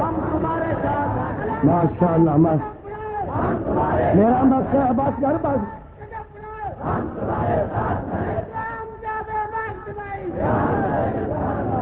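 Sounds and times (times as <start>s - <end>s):
crowd chanting slogans in unison: 0.0s - 11.8s
speech: 1.6s - 5.8s.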